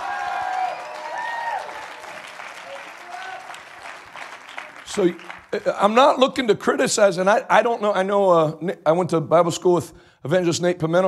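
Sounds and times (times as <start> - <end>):
audience shouting: 0.0 - 3.6
audience clapping: 0.0 - 6.0
speech: 5.0 - 11.0.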